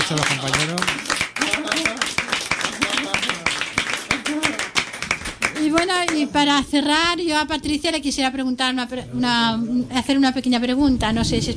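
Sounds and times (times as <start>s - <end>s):
audience applause: 0.0s - 6.3s
speech: 0.1s - 2.1s, 5.7s - 11.5s.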